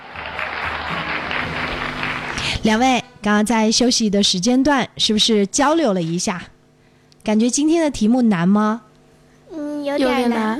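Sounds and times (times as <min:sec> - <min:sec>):
audience applause: 0:00.0 - 0:02.6
speech: 0:02.5 - 0:06.5, 0:07.2 - 0:08.9, 0:09.8 - 0:10.5.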